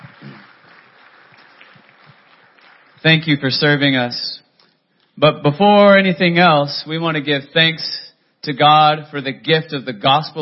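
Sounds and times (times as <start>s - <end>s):
audience clapping: 0.0s - 4.0s
speech: 3.0s - 4.4s, 5.2s - 10.4s.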